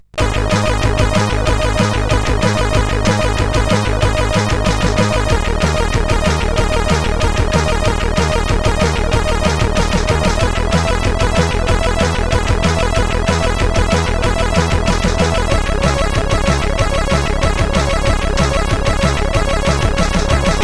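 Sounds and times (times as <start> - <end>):
basic chiptune tune on a SID CSG8580R5 sound chip: 0.0 - 20.6.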